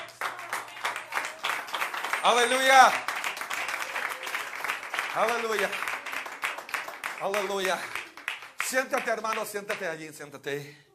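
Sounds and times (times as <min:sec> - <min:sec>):
audience clapping hands: 0:00.0 - 0:10.0
speech: 0:02.2 - 0:03.1, 0:05.2 - 0:05.9, 0:07.2 - 0:08.0, 0:08.7 - 0:10.8.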